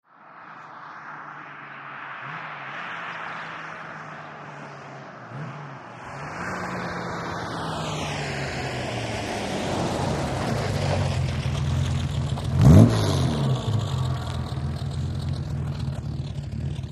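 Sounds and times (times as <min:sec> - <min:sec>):
Aston Martin car approaching and stopping: 0:00.2 - 0:16.9
Aston Martin car engine revving: 0:05.3 - 0:16.9
Aston Martin car engine switching off: 0:10.8 - 0:16.9.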